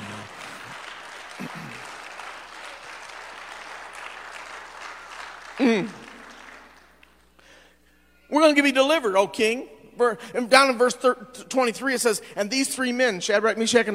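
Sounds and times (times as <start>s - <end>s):
audience hand clapping: 0.0s - 7.4s
speech: 5.6s - 6.0s, 8.3s - 13.9s.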